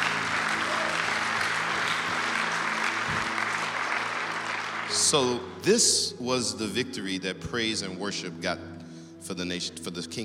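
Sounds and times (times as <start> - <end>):
audience hand clapping: 0.0 - 5.5
speech: 4.9 - 8.7, 9.3 - 10.2.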